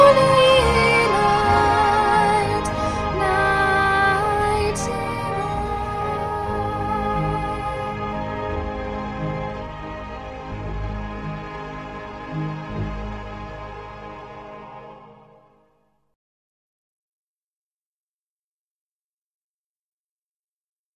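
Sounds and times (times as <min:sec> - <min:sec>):
soprano singing top part: 0:00.0 - 0:15.5.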